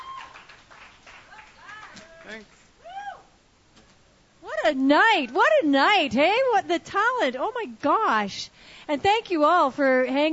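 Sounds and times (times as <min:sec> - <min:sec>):
audience applause: 0:00.0 - 0:02.5
speech: 0:02.3 - 0:02.6, 0:04.7 - 0:10.3.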